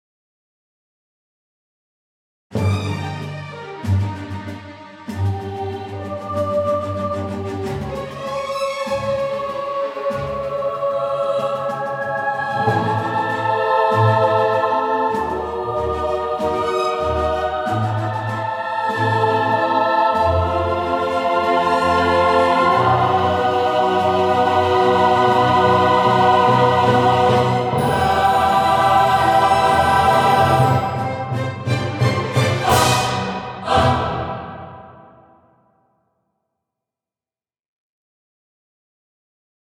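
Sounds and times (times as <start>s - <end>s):
choir singing: 5.1s - 35.6s.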